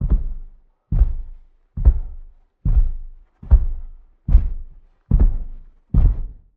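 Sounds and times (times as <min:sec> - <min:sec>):
Santa delivery footsteps on a rooftop: 0:00.0 - 0:06.5.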